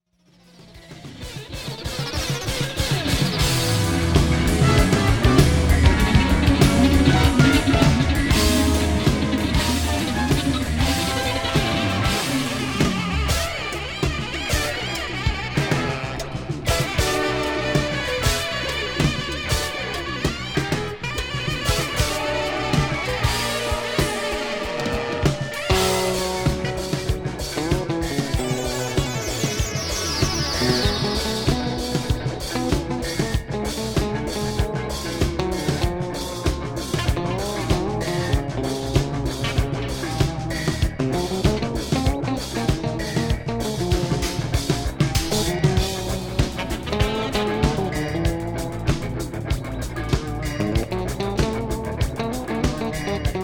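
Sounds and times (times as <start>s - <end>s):
bass: 0.0s - 53.4s.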